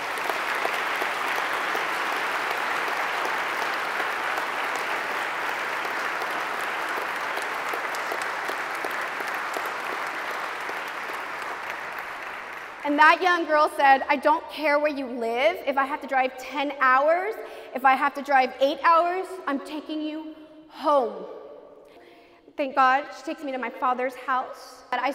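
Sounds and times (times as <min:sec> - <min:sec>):
audience applause: 0:00.0 - 0:13.0
speech: 0:13.0 - 0:21.4, 0:22.6 - 0:25.1.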